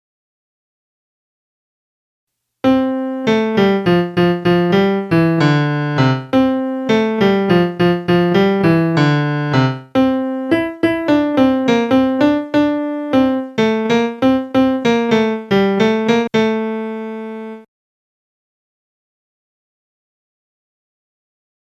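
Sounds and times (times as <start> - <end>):
melody: 2.7 - 17.6.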